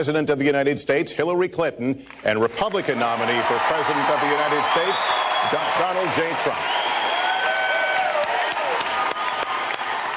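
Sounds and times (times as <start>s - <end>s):
speech: 0.0s - 7.0s
audience clapping and cheering at a US presidential debate: 2.0s - 10.1s.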